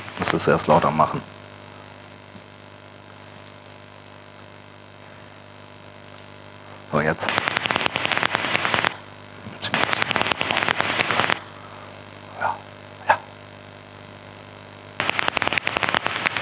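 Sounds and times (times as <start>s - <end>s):
speech: 0.2s - 1.4s
Daubenton's bat calls via heterodyne detector: 7.0s - 11.6s, 12.2s - 13.4s, 15.0s - 16.4s.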